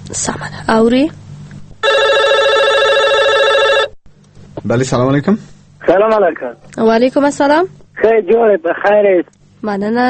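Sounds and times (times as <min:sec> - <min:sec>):
speech: 0:00.1 - 0:01.2, 0:04.6 - 0:10.0
telephone ringing for an incoming call to a radio show, electronic trill: 0:01.8 - 0:04.0.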